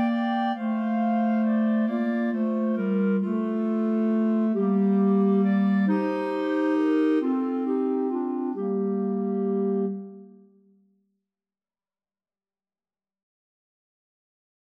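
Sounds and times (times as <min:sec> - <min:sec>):
clarinet trio: 0:00.0 - 0:10.5.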